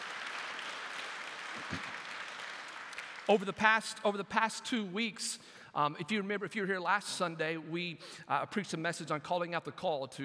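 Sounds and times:
crowd applauding: 0:00.0 - 0:03.6
speech: 0:03.3 - 0:10.2.

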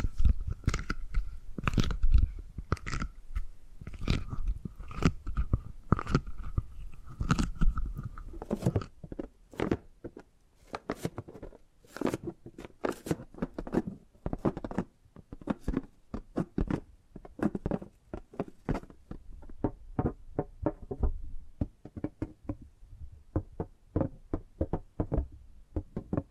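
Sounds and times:
crunchy gripping sounds: 0:00.0 - 0:22.6
tapping and knocking: 0:13.6 - 0:22.7, 0:23.3 - 0:26.2.

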